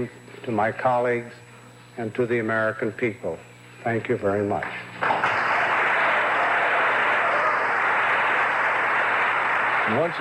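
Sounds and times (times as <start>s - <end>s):
speech: 0.0s - 1.4s, 2.0s - 5.0s, 9.9s - 10.2s
large crowd of congressmen and senators applauding in the East Room of the White House: 5.0s - 10.2s.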